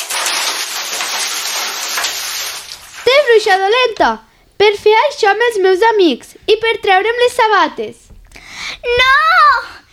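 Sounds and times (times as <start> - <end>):
bucket of water thrown splashing: 0.0 - 3.8
speech: 3.4 - 8.0, 8.8 - 9.7.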